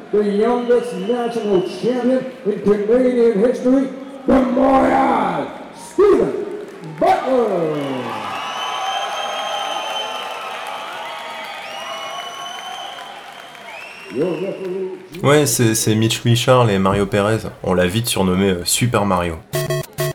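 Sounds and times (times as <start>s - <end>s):
speech: 0.1s - 6.4s, 7.0s - 8.0s, 14.2s - 19.6s
boxing crowd cheering and shouting: 4.2s - 13.4s.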